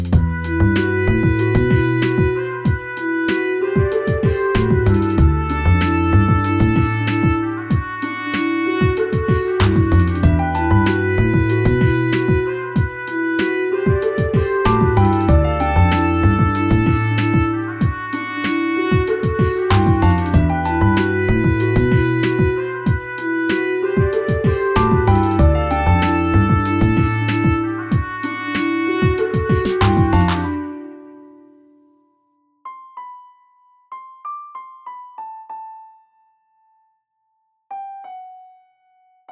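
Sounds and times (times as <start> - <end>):
trumpet: 0.2 - 31.4.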